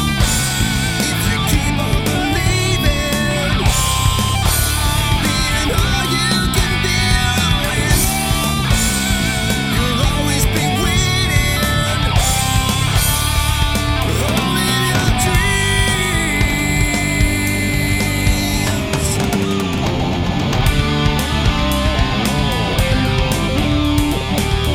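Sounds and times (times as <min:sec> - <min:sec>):
electric harmony karaoke music: 0:00.0 - 0:24.7.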